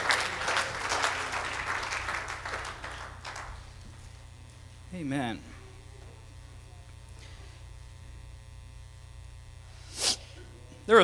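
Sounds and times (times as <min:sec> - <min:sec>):
seated audience clapping hands: 0:00.0 - 0:04.2
speech: 0:05.0 - 0:05.5, 0:10.9 - 0:11.0.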